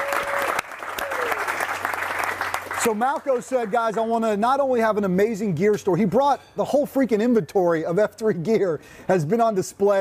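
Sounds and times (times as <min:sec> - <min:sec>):
crowd applauding: 0:00.0 - 0:04.2
speech: 0:02.8 - 0:10.0.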